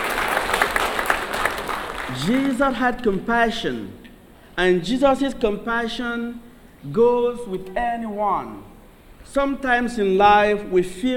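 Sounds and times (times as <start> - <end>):
children clapping: 0.0 - 2.6
speech: 2.2 - 4.0, 4.6 - 8.7, 9.3 - 11.1.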